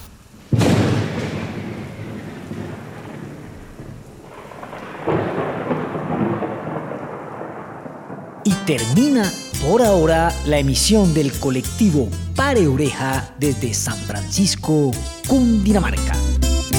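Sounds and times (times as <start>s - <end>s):
thunderclap of an electrical storm over mountains: 0.0s - 8.5s
speech: 8.7s - 16.3s.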